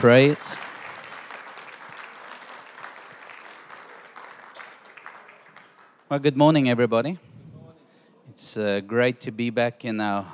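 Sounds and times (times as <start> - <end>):
speech: 0.0 - 0.6, 6.1 - 7.3, 8.3 - 10.3
audience applauding: 0.0 - 6.1.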